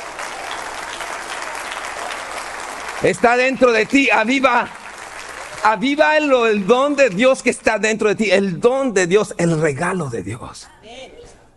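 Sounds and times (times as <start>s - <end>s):
audience applauding: 0.0s - 8.1s
speech: 3.0s - 4.8s, 5.6s - 11.2s.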